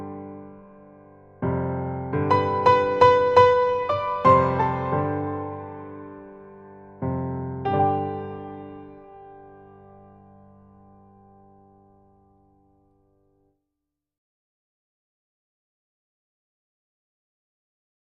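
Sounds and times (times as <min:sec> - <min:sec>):
introspective piano etude: 0:00.0 - 0:12.8.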